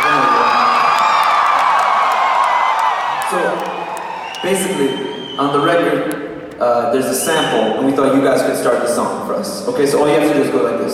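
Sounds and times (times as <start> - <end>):
loud crowd cheering and whooping: 0.0 - 6.0
speech: 4.4 - 10.9.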